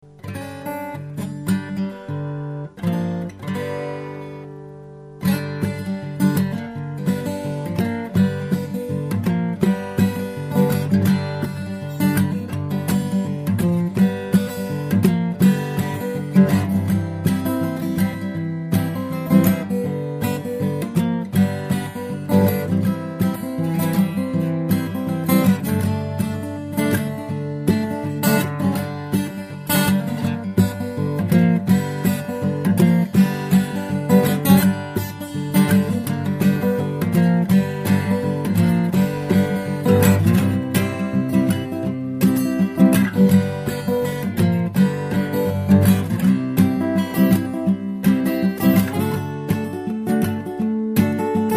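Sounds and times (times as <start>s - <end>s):
country blues music: 0.1s - 51.5s.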